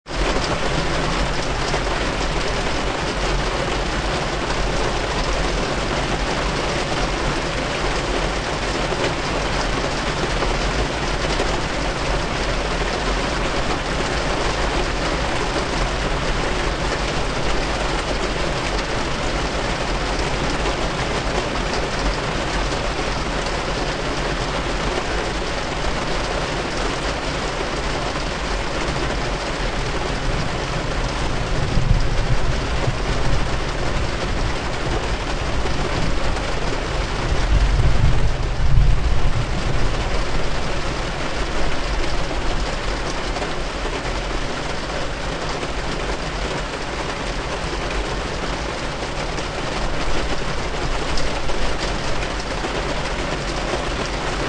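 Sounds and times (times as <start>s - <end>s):
rain beating on car: 0.0s - 54.4s
windshield wipers: 0.1s - 54.4s
thunder: 30.8s - 41.6s.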